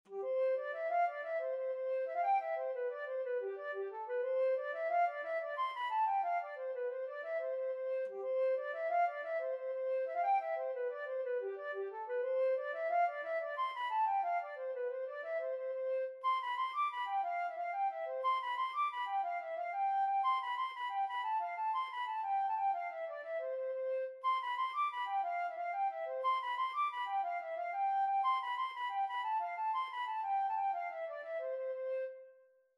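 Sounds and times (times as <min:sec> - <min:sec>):
flute: 0:00.0 - 0:32.7.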